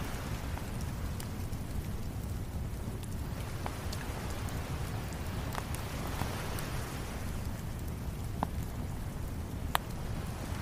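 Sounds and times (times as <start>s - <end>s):
fire crackling on the beach: 0.0s - 10.6s.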